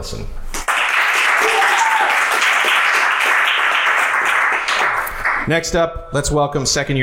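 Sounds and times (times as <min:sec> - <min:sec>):
speech: 0:00.0 - 0:00.5, 0:05.5 - 0:07.0
audience applause at a college presentation: 0:00.6 - 0:05.5.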